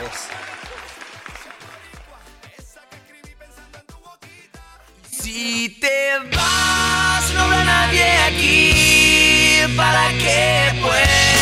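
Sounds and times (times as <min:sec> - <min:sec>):
crowd applauding: 0:00.0 - 0:02.7
speech: 0:05.2 - 0:11.1
band playing with thumping bass and drums: 0:06.3 - 0:11.4.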